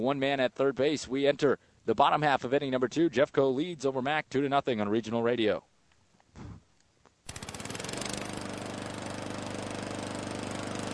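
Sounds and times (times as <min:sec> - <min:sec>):
speech: 0:00.0 - 0:05.7
lawn mower engine running: 0:07.3 - 0:10.9.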